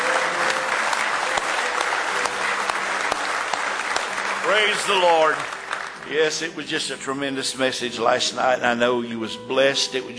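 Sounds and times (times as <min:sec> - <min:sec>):
audience applause: 0:00.0 - 0:06.4
speech: 0:04.5 - 0:10.1.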